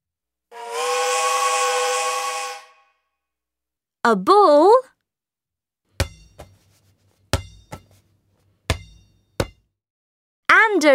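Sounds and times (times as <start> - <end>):
toy steam train whistle: 0.5 - 3.1
speech: 4.1 - 4.8.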